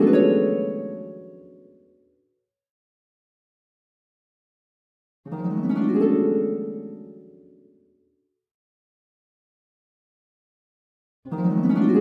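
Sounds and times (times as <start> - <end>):
harp: 0.0 - 2.0, 5.3 - 7.9, 11.3 - 12.0.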